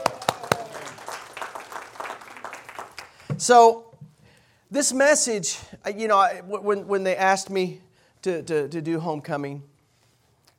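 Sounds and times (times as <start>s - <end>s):
audience hand clapping: 0.0s - 3.5s
speech: 3.4s - 3.9s, 4.7s - 9.7s.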